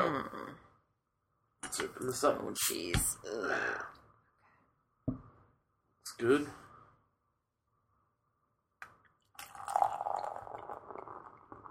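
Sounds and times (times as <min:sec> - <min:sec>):
speech: 0:01.7 - 0:04.0, 0:06.2 - 0:06.6
beer pouring into a glass: 0:09.3 - 0:11.7.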